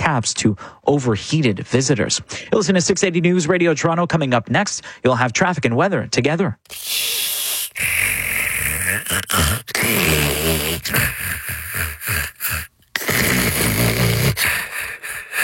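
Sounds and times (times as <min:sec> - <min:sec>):
speech: 0:00.1 - 0:07.1, 0:09.0 - 0:14.5
snoring: 0:06.7 - 0:15.4.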